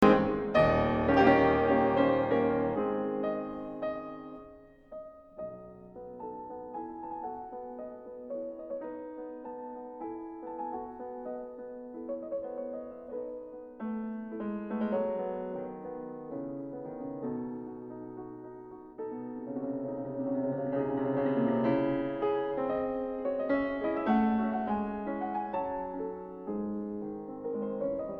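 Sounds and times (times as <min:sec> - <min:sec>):
polonaise in C sharp minor: 0:00.0 - 0:28.1.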